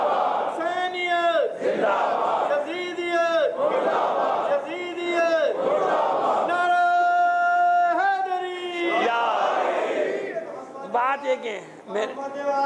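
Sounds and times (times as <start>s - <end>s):
crowd shouting a religious slogan in unison during a sermon: 0.0s - 10.5s
speech: 11.2s - 12.6s.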